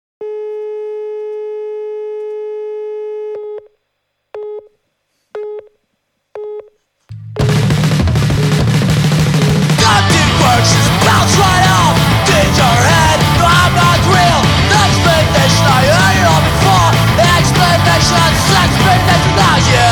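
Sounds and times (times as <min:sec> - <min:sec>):
electric guitar: 0:07.2 - 0:19.9.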